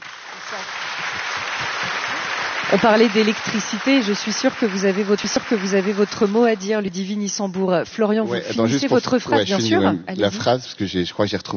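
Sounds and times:
studio audience applauding to welcome a guest: 0.0 - 7.2
speech: 0.4 - 1.6, 2.7 - 11.5.

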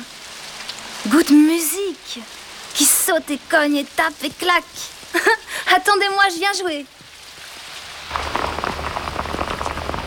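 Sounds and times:
speech: 1.0 - 7.0
rain drops tapping on a hood: 2.5 - 10.0.

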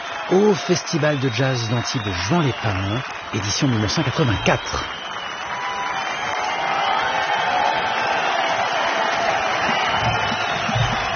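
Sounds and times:
jazz festival audience in Antibes applauding and cheering for an encore: 0.0 - 11.1
speech: 0.3 - 5.0.

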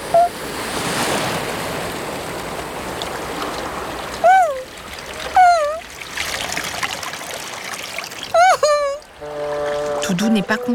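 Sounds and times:
big sea waves surging and splashing onto a shore: 0.0 - 10.7
vocal whoops: 4.2 - 4.7, 5.4 - 5.8, 8.4 - 9.0
speech: 10.1 - 10.7.

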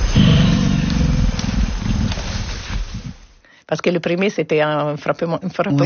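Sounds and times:
deep guttural animal grunt: 0.1 - 3.2
speech: 3.7 - 5.8.

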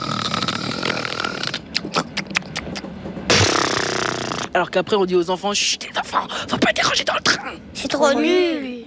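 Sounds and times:
voice imitating loud rasping snoring: 0.0 - 1.8, 3.3 - 4.5
speech: 4.6 - 8.7.

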